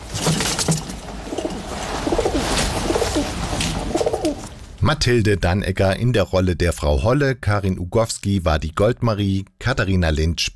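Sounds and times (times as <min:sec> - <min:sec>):
satisfied pigeons cooing: 0:01.3 - 0:04.5
speech: 0:04.9 - 0:10.5.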